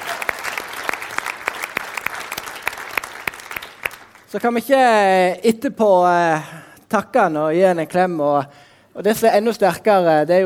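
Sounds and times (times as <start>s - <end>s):
audience applause: 0.0s - 4.3s
speech: 4.3s - 10.4s.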